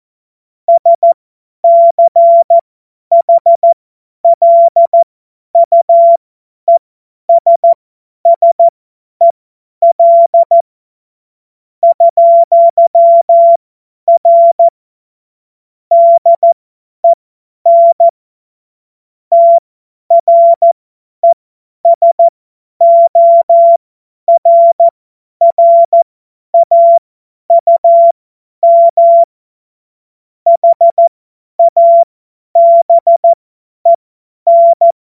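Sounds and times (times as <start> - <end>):
CW Morse code beeps: 0.7 - 10.6, 11.8 - 14.7, 15.9 - 16.6, 17.7 - 18.1, 19.3 - 26.0, 26.6 - 29.3, 30.5 - 35.0.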